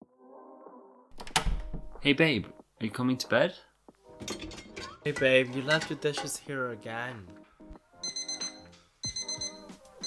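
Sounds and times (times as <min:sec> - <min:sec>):
speech: 0:02.0 - 0:04.4, 0:05.0 - 0:07.4
alarm clock ringing: 0:08.0 - 0:10.0.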